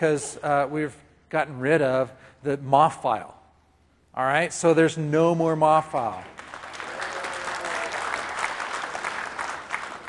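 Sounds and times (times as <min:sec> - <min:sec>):
speech: 0:00.0 - 0:03.4, 0:04.2 - 0:06.5
audience applause: 0:06.4 - 0:10.0.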